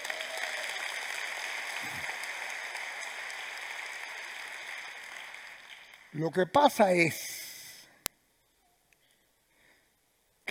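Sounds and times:
large gathering clapping: 0.0s - 7.0s
speech: 6.2s - 7.3s.

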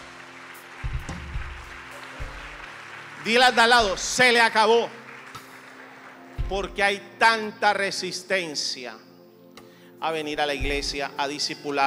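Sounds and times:
church congregation clapping: 0.0s - 7.5s
speech: 3.2s - 5.0s, 6.5s - 9.1s, 10.0s - 11.8s.

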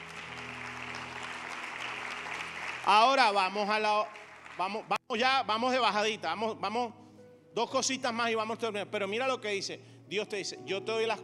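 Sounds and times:
church congregation clapping in praise of God: 0.0s - 5.0s
speech: 2.9s - 7.0s, 7.6s - 11.2s.

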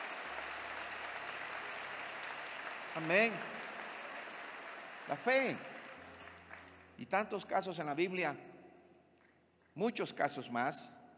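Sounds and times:
crowd applause: 0.0s - 7.0s
speech: 3.0s - 3.6s, 5.1s - 5.7s, 7.0s - 8.5s, 9.8s - 11.0s.

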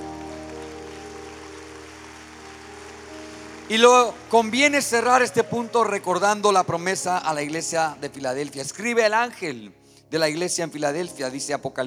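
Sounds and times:
audience applauding: 0.0s - 8.8s
speech: 3.7s - 11.8s.

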